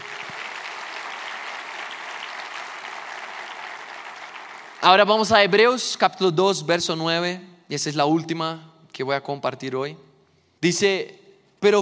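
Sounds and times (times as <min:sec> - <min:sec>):
audience applause: 0:00.0 - 0:04.9
speech: 0:04.8 - 0:11.8.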